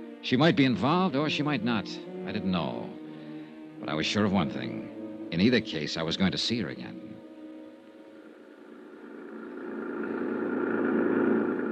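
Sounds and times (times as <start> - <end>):
speech: 0.2 - 3.0, 3.8 - 7.1
jeep engine driving: 8.2 - 11.6.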